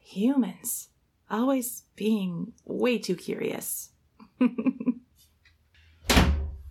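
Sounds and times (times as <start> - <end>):
speech: 0.2 - 5.0
door closing: 6.0 - 6.7.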